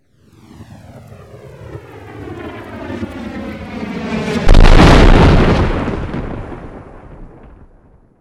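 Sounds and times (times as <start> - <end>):
missile strike: 4.4 - 7.6.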